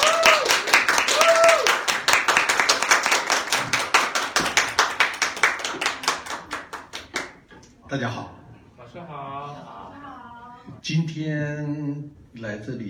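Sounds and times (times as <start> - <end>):
audience clapping: 0.0 - 7.5
speech: 7.9 - 9.8, 10.8 - 12.8.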